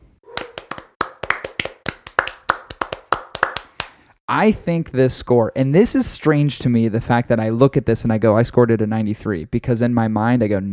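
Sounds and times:
hand clapping: 0:00.3 - 0:04.2
speech: 0:04.3 - 0:10.7.

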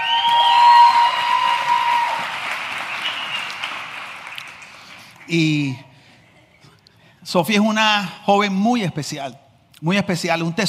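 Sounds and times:
applause: 0:00.0 - 0:05.7
speech: 0:05.3 - 0:05.9, 0:07.3 - 0:10.6.

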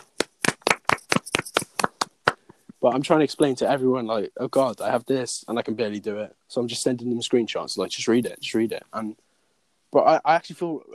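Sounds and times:
clapping: 0:00.0 - 0:02.5
speech: 0:02.8 - 0:09.2, 0:09.9 - 0:10.9.

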